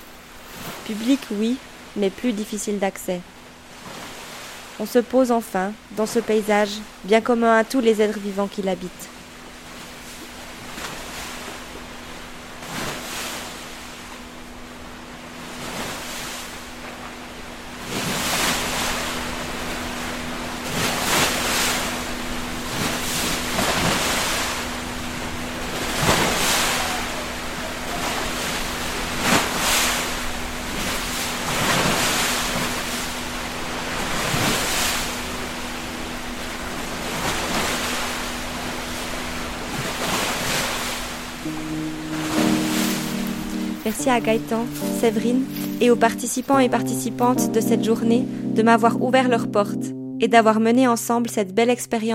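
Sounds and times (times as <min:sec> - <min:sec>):
speech: 0:00.9 - 0:04.0, 0:04.8 - 0:09.2, 0:44.0 - 0:52.1
waves breaking on a pebble beach: 0:12.6 - 0:14.0, 0:17.8 - 0:35.4, 0:36.7 - 0:45.0
constant low hum: 0:13.5 - 0:51.7.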